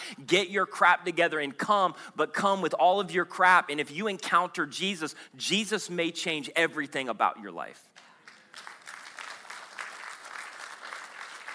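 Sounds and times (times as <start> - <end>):
speech: 0.1 - 7.9
light polite golf clap applause: 8.0 - 11.5.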